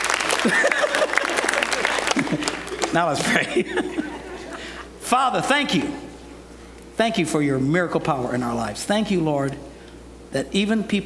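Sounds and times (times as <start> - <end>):
audience clapping: 0.0 - 3.6
laughter: 0.0 - 4.9
speech: 0.4 - 1.1, 2.3 - 4.1, 5.1 - 6.0, 7.0 - 9.7, 10.3 - 11.0.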